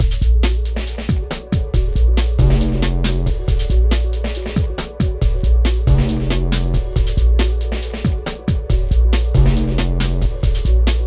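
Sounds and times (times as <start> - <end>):
hardcore breakbeat in A minor at 138 BPM: 0.0 - 11.0.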